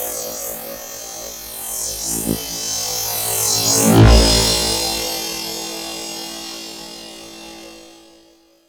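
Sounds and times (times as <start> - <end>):
electronic pad: 1.8 - 5.7.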